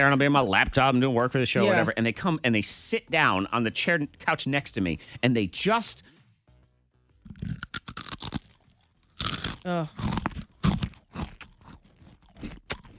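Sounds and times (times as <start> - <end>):
speech: 0.0 - 6.2, 9.6 - 10.2
crunching on a Cheez-It cracker: 7.2 - 12.9.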